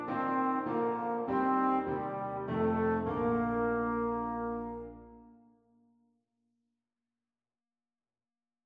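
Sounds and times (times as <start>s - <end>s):
trombone duet playing a Christmas carol: 0.0s - 5.2s.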